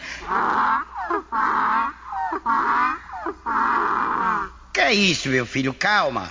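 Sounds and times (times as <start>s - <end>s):
donkey braying: 0.2s - 4.6s
speech: 2.4s - 6.2s.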